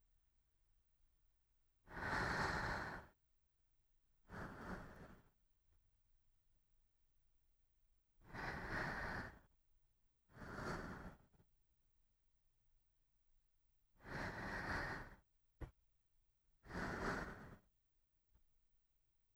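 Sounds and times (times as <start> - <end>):
sleeping breath: 1.9 - 3.2, 4.2 - 5.4, 8.2 - 9.5, 10.3 - 11.4, 14.0 - 15.3, 16.6 - 17.7.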